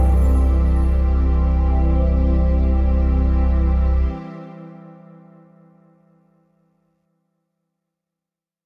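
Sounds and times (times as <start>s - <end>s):
120 bpm music track: 0.0s - 6.7s.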